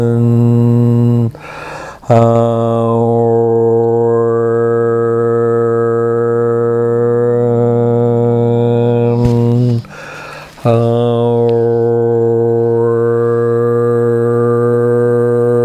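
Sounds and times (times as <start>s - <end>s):
meditation chant: 0.0s - 15.6s.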